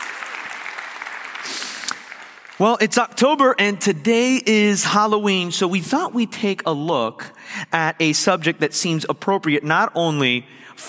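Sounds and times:
audience clapping: 0:00.0 - 0:03.1
speech: 0:02.6 - 0:10.8.

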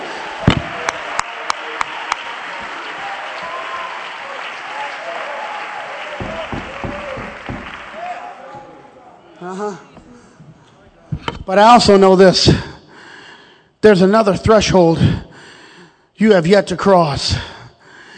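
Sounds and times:
audience clapping hands: 0:00.0 - 0:08.8
speech: 0:11.5 - 0:12.7, 0:13.8 - 0:15.2, 0:16.2 - 0:17.5.

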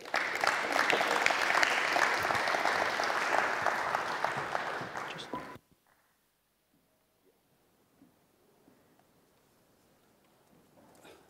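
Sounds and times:
audience applause welcoming a speaker: 0:00.0 - 0:05.6.

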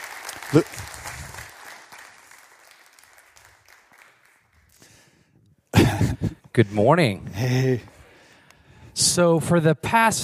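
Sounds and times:
audience applause in a church welcoming a children's pastor: 0:00.0 - 0:05.2
speech: 0:00.5 - 0:00.9, 0:06.6 - 0:07.9, 0:09.0 - 0:10.2.

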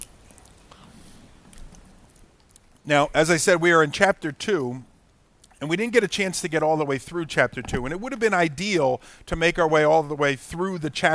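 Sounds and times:
person taking a quick sip of a drink: 0:00.0 - 0:02.8
speech: 0:02.8 - 0:04.9, 0:05.6 - 0:11.1.

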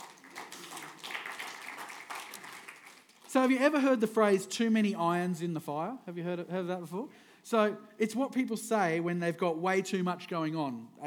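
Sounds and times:
crowd applause: 0:00.0 - 0:03.4
speech: 0:03.3 - 0:11.0.

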